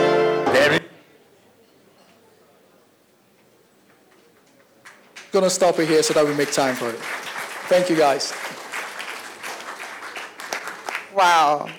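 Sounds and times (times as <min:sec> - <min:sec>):
audience applause: 0:04.1 - 0:11.7
speech: 0:05.3 - 0:08.6, 0:11.2 - 0:11.7.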